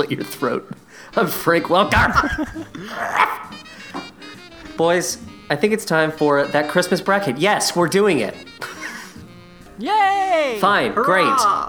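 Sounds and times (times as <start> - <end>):
speech: 0.0 - 3.7, 4.8 - 8.7, 9.8 - 11.6
man imitating a cartoon dog barking: 1.2 - 3.6, 9.9 - 11.6
laughter: 1.2 - 4.0, 8.5 - 9.4, 10.8 - 11.6.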